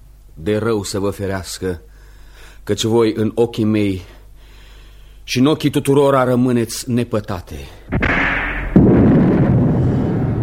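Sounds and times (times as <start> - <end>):
speech: 0.4 - 1.9, 2.6 - 4.2, 5.3 - 8.0
thunder: 7.9 - 10.4.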